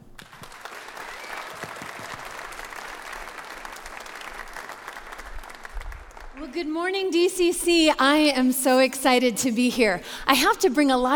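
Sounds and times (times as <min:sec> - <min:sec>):
audience applauding to welcome a guest speaker: 0:00.0 - 0:06.5
speech: 0:06.4 - 0:11.1.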